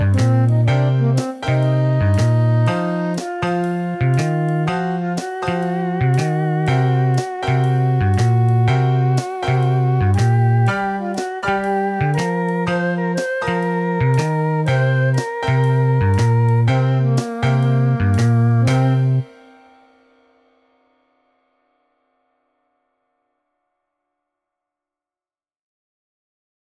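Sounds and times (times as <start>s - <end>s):
MIDI blues music: 0.0s - 19.3s.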